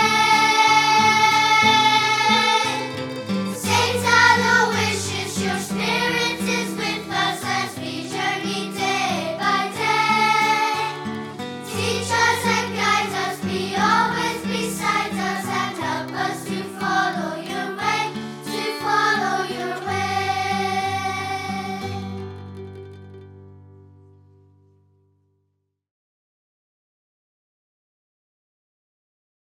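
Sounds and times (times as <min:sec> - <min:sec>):
hymn: 0:00.0 - 0:22.4.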